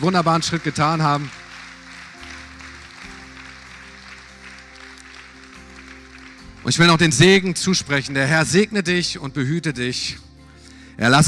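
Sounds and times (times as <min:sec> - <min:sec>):
speech: 0:00.0 - 0:01.4, 0:06.7 - 0:10.3, 0:11.0 - 0:11.2
audience applause: 0:00.0 - 0:07.5.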